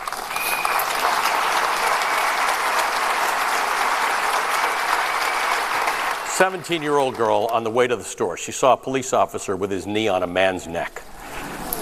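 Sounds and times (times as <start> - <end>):
audience applause: 0.0 - 7.7
speech: 6.4 - 11.0.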